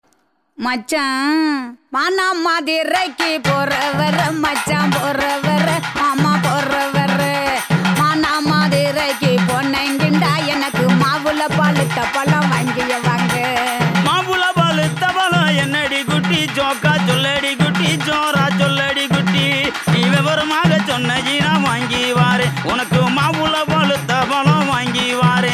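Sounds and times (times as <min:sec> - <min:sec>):
kuthu dance song: 0:00.6 - 0:25.5.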